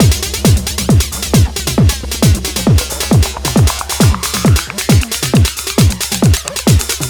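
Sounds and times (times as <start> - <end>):
drum loop at 135 BPM: 0.0 - 7.0.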